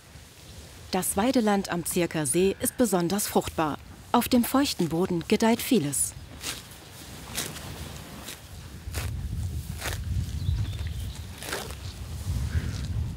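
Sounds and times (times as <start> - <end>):
speech: 0.9 - 6.6
cattle chewing and moving while grazing: 6.2 - 13.0
cows tearing off grass while grazing: 6.3 - 13.0.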